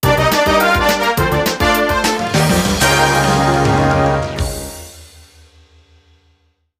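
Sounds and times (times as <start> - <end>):
battle jingle: 0.6 - 5.0.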